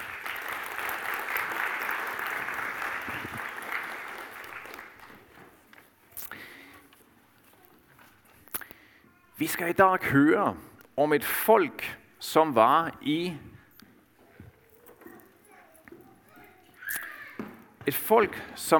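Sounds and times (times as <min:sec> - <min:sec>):
audience applause: 0:00.0 - 0:05.3
speech: 0:09.4 - 0:13.5, 0:18.1 - 0:18.7.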